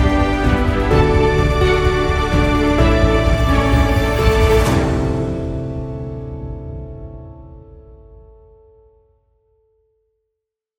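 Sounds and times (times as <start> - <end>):
orchestral heroic epic movie music: 0.0 - 7.0.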